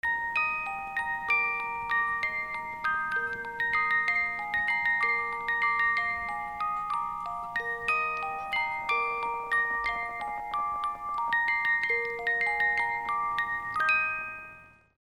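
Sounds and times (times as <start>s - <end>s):
music: 0.0s - 15.0s.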